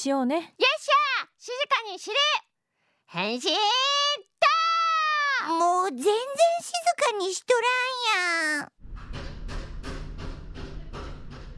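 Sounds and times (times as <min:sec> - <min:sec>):
speech: 0:00.0 - 0:02.5, 0:03.1 - 0:04.3, 0:05.4 - 0:08.8
construction banging in the neighbourhood: 0:08.8 - 0:11.5
low continuous rumble: 0:08.8 - 0:11.5.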